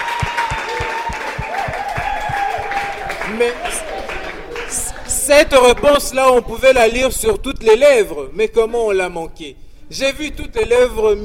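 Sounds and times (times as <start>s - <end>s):
audience applause: 0.0s - 6.0s
speech: 3.3s - 3.8s, 5.3s - 11.2s.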